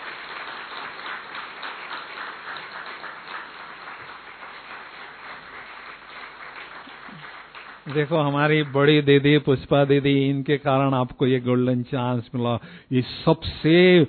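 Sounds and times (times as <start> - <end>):
sizable crowd applauding: 0.0 - 9.6
speech: 7.9 - 14.0.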